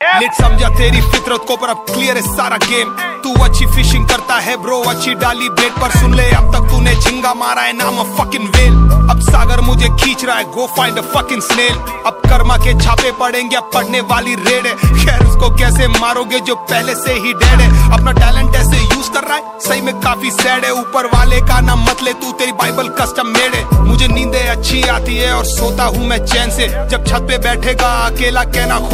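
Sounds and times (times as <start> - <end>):
Hindi rap ringtone: 0.0 - 28.9.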